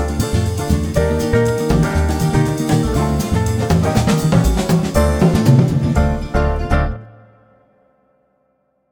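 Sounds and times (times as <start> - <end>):
jazz wind instruments in alt style: 0.0 - 6.2.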